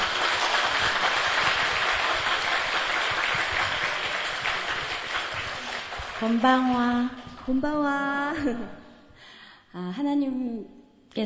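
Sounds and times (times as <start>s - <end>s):
audience applause: 0.0s - 7.6s
speech: 6.2s - 8.8s, 9.7s - 11.2s.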